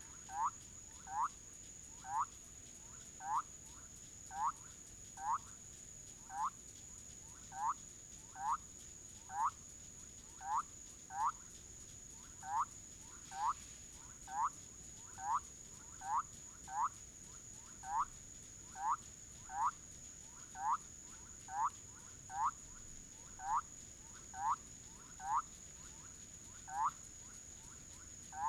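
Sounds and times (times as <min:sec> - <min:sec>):
Leptodactylus bolivianus calling: 0:00.2 - 0:01.4, 0:02.0 - 0:02.4, 0:03.2 - 0:03.5, 0:04.3 - 0:04.6, 0:05.2 - 0:05.5, 0:07.5 - 0:08.6, 0:09.3 - 0:09.6, 0:10.4 - 0:11.4, 0:12.4 - 0:13.6, 0:14.3 - 0:14.6, 0:15.2 - 0:17.0, 0:17.7 - 0:19.8, 0:20.5 - 0:22.7, 0:23.3 - 0:26.0, 0:26.6 - 0:27.1.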